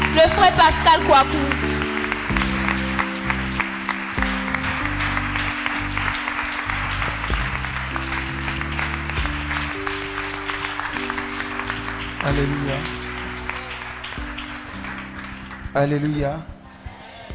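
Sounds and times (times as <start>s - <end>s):
large crowd clapping and cheering: 0.0s - 17.3s
sustained keyboard or organ chords: 0.0s - 17.3s
speech: 0.2s - 1.7s, 12.2s - 13.0s, 15.7s - 16.5s.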